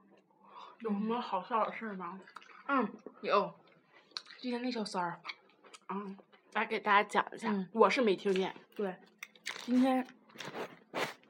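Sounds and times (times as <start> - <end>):
speech: 0.8 - 3.6, 4.4 - 10.6
person chewing preserved plums: 2.2 - 2.7, 3.6 - 4.5, 5.2 - 6.6, 8.3 - 11.2.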